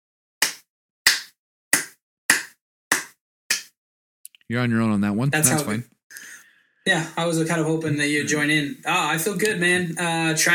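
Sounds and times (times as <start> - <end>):
one person clapping slowly: 0.4 - 3.7
speech: 4.5 - 10.5.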